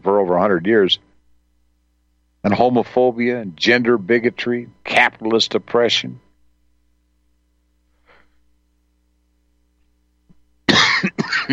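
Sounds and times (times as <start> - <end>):
speech: 0.2 - 1.1, 2.4 - 6.2
person coughing from choking: 10.7 - 11.5.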